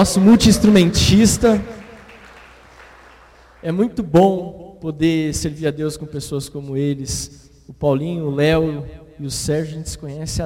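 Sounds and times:
speech: 0:00.0 - 0:01.7, 0:03.6 - 0:10.4
audience applauding: 0:00.0 - 0:03.8.

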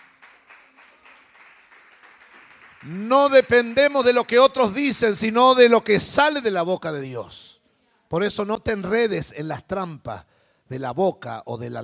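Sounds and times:
audience applauding: 0:00.0 - 0:04.8
speech: 0:02.8 - 0:07.5, 0:08.1 - 0:11.8.

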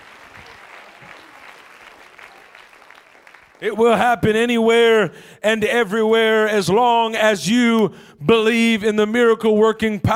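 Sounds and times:
audience clapping hands: 0:00.0 - 0:03.9
speech: 0:03.6 - 0:10.1.

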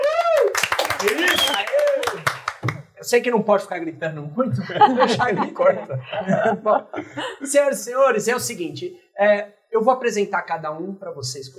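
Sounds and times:
audience clapping along: 0:00.0 - 0:03.0
speech: 0:03.1 - 0:11.5
laughter: 0:04.6 - 0:07.5.

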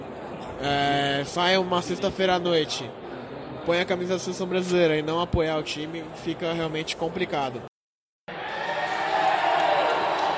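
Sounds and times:
speech: 0:00.6 - 0:03.0, 0:03.6 - 0:07.7
stadium crowd cheering: 0:08.3 - 0:10.3.

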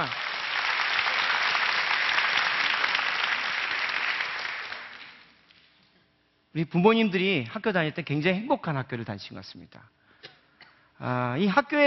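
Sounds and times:
audience applause: 0:00.0 - 0:05.3
speech: 0:06.6 - 0:10.0, 0:11.0 - 0:11.8.

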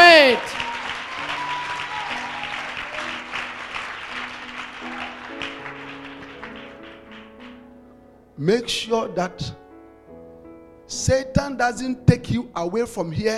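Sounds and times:
audience clapping: 0:00.0 - 0:07.6
speech: 0:08.4 - 0:09.6, 0:10.9 - 0:13.3.

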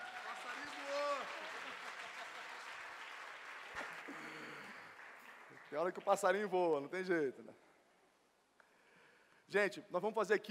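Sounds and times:
audience applauding: 0:00.0 - 0:06.5
speech: 0:05.7 - 0:07.6, 0:09.5 - 0:10.4.

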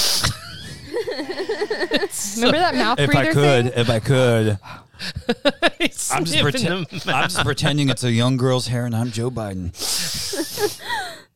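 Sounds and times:
sniffing the microphone: 0:00.0 - 0:00.9, 0:09.8 - 0:10.8
laughter: 0:00.4 - 0:08.0, 0:09.9 - 0:11.2
speech: 0:01.2 - 0:11.3.

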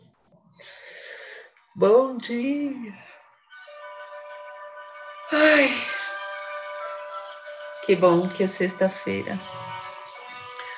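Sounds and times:
deep breath: 0:00.5 - 0:01.6
speech: 0:01.8 - 0:03.1, 0:07.9 - 0:09.6.

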